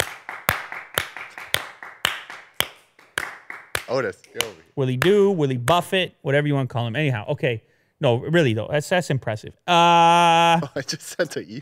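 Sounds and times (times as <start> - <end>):
round of applause: 0.0 - 4.5
speech: 3.9 - 11.6.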